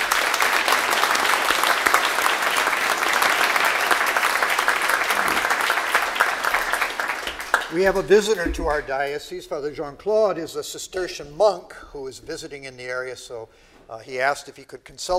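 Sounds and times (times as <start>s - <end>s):
audience applause: 0.0s - 8.4s
speech: 7.7s - 15.1s.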